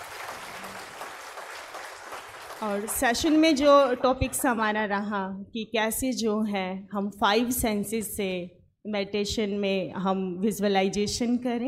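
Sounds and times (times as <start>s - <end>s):
audience applause at the close of a meditation session: 0.0s - 3.3s
speech: 2.6s - 11.6s.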